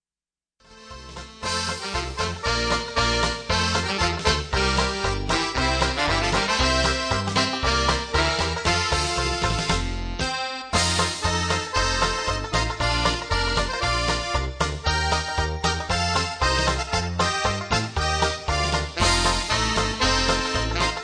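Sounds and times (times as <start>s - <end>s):
button accordion medley: 0.6s - 21.0s.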